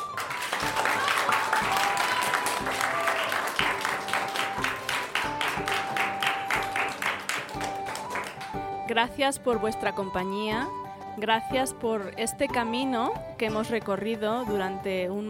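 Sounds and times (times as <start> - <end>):
class applauding: 0.0 - 8.8
speech: 9.0 - 15.2.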